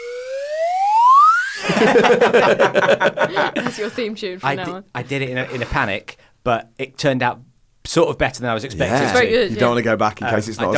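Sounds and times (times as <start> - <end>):
swanee whistle rising: 0.0 - 1.6
laughter: 1.6 - 5.7
speech: 1.7 - 10.7.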